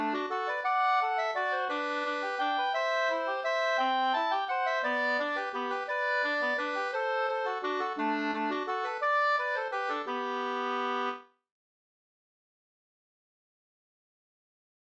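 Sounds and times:
waltz music: 0:00.0 - 0:11.2.

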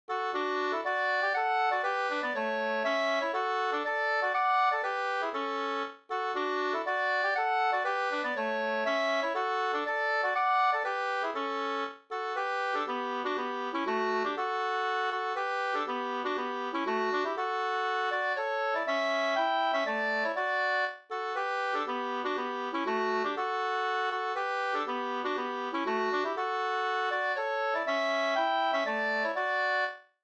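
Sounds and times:
two-part polska folk dance tune: 0:00.1 - 0:30.0.

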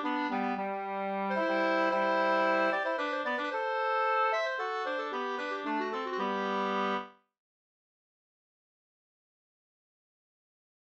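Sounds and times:
polska dance tune: 0:00.0 - 0:07.1.

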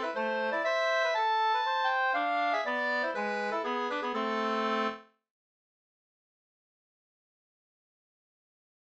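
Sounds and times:
two-part polska: 0:00.0 - 0:05.1.

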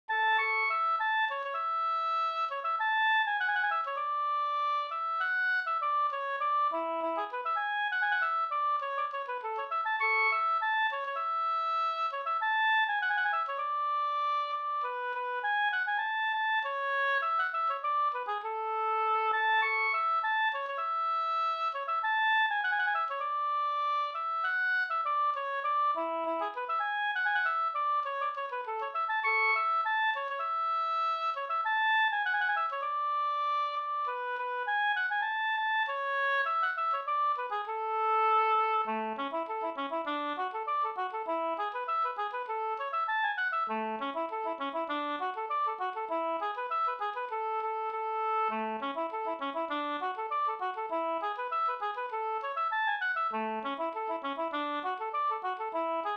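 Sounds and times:
polka music: 0:00.1 - 0:56.1.

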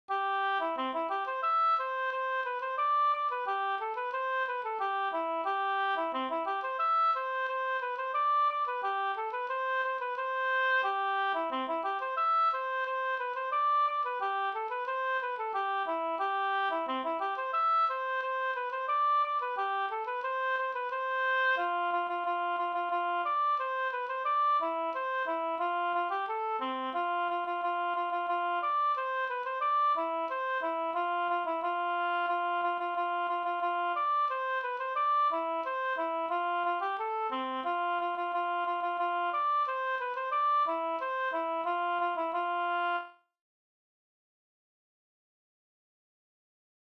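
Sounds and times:
polka music: 0:00.1 - 0:43.2.

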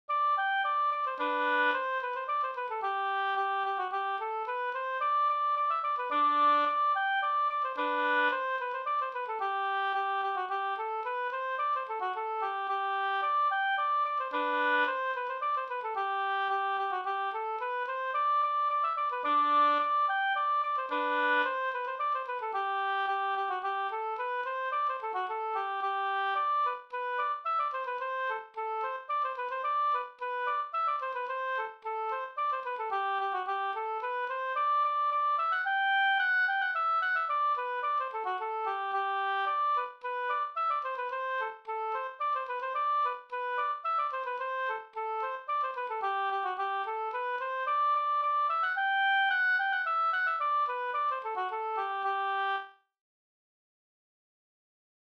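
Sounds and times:
slängpolska folk dance tune: 0:00.1 - 0:52.7.

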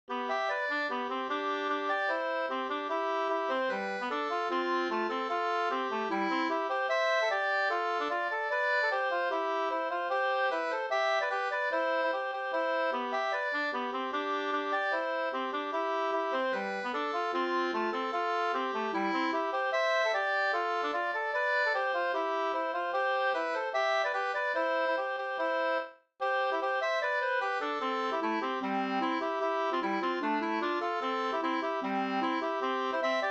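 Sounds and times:
schottische dance tune in 4-4 time: 0:00.2 - 0:25.4, 0:26.2 - 0:33.2.

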